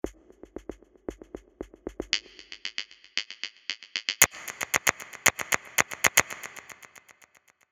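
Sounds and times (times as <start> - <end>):
Geiger counter clicking: 2.2 - 7.6.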